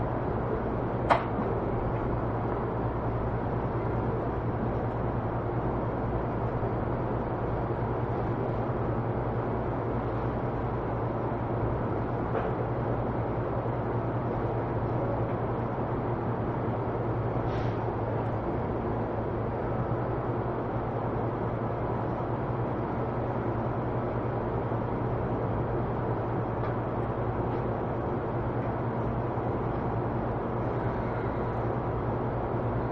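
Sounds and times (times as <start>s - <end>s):
JR E231 series commuter train rumbling: 0.0s - 32.9s.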